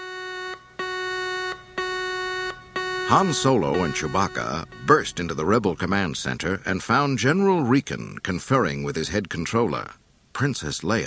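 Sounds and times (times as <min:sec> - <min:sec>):
warning alarm blaring in distant corridors: 0:00.0 - 0:06.3
speech: 0:03.1 - 0:11.0.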